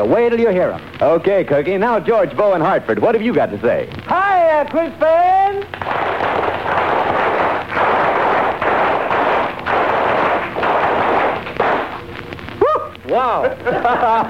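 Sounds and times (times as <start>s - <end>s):
speech: 0.0s - 6.2s, 13.2s - 14.2s
audience applause: 5.7s - 12.0s
high-pitched whoop: 12.6s - 13.0s
laughter: 12.6s - 14.2s.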